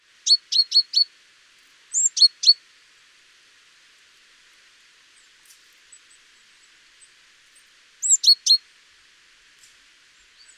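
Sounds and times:
Great tit calling: 0:02.0 - 0:02.6, 0:08.0 - 0:08.6.

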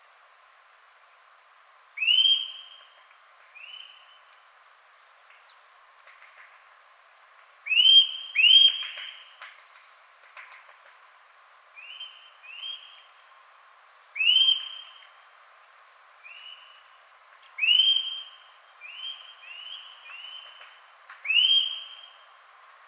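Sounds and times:
Eurasian nuthatch whistled calls: 0:02.0 - 0:02.9, 0:07.7 - 0:09.2, 0:11.8 - 0:13.1, 0:14.2 - 0:15.0, 0:16.2 - 0:16.9, 0:17.6 - 0:20.6, 0:21.2 - 0:22.2.

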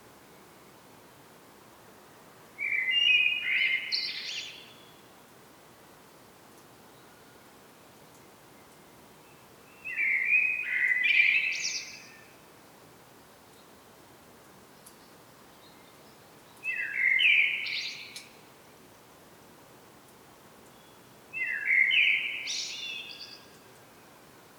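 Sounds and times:
faint background hiss: 0:00.0 - 0:24.5
common blackbird singing: 0:02.6 - 0:04.8, 0:09.8 - 0:12.2, 0:16.6 - 0:18.3, 0:21.4 - 0:23.5.

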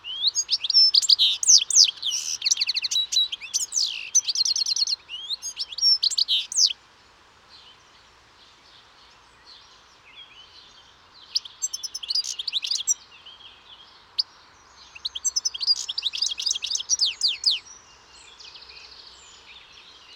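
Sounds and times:
European goldfinch Carduelis carduelis calling: 0:00.1 - 0:06.7, 0:15.0 - 0:17.6.

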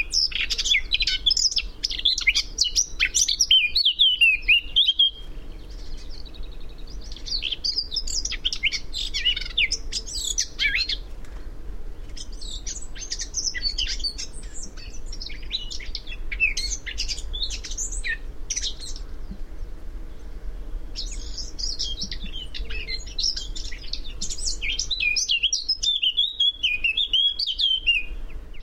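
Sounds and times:
Eurasian blackcap warbling song: 0:00.0 - 0:28.6.

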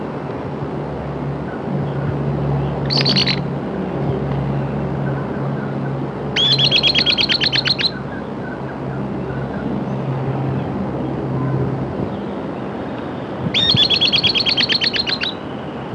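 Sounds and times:
low engine-like rumble: 0:00.0 - 0:15.9
bird calling sharp notes: 0:02.8 - 0:03.4, 0:06.4 - 0:08.6, 0:13.6 - 0:15.4.

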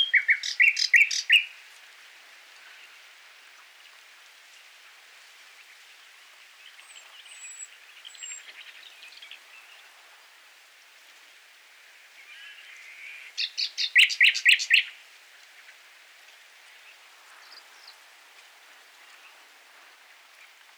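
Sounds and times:
common nightingale singing: 0:00.0 - 0:01.6, 0:06.8 - 0:09.7, 0:12.2 - 0:15.0
steady background hiss: 0:00.0 - 0:20.7.

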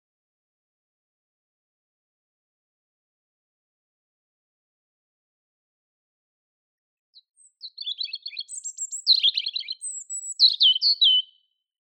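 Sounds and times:
European robin Erithacus rubecula singing: 0:07.2 - 0:11.5.

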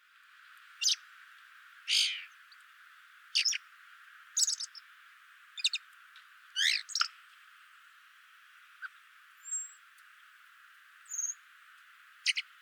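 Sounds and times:
faint hiss: 0:00.0 - 0:12.5
common blackbird calling: 0:00.8 - 0:01.0, 0:01.9 - 0:02.4, 0:03.4 - 0:03.6, 0:04.4 - 0:04.8, 0:05.6 - 0:05.8, 0:06.6 - 0:07.1, 0:12.2 - 0:12.5.

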